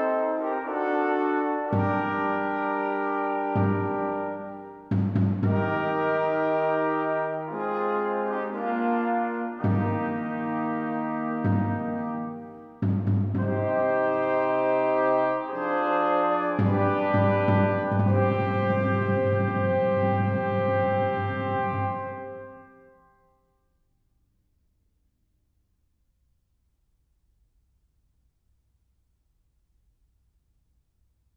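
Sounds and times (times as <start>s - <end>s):
funeral march music: 0.0s - 22.8s.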